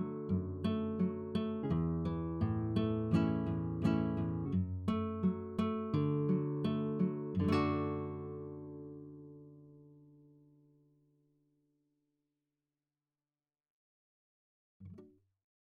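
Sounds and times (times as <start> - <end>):
nylon guitar picking and strumming: 0.0 - 10.9.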